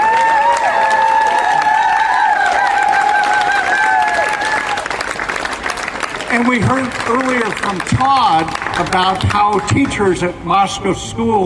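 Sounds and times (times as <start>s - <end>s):
crowd applause and cheering: 0.0s - 9.9s
speech: 6.4s - 11.4s.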